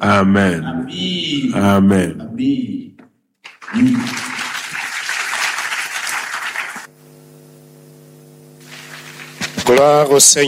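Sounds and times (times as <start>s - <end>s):
speech: 0.0s - 2.9s, 3.7s - 4.3s, 9.7s - 10.4s
church congregation applause acclaiming the Lord during a service: 3.4s - 6.9s.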